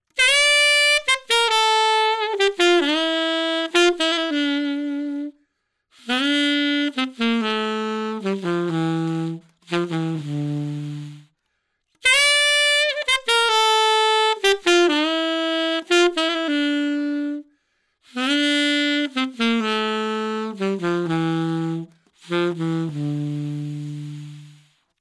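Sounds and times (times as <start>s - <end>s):
reed instrument with cane reed playing: 0.1s - 5.4s, 6.0s - 11.3s, 12.0s - 17.5s, 18.1s - 24.8s.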